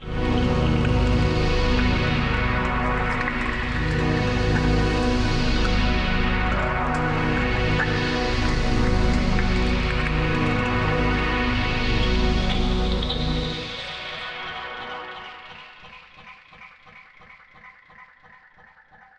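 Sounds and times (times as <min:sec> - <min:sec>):
synth pad: 0:00.0 - 0:16.6.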